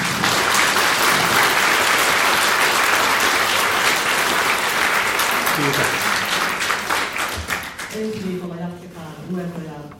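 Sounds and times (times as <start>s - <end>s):
audience applause for lecturer: 0.0s - 8.0s.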